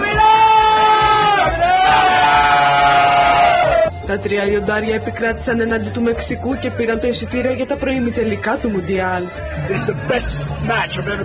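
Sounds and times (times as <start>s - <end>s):
football fans cheering and yelling outside stadium: 0.0s - 3.9s
speech: 4.1s - 11.2s.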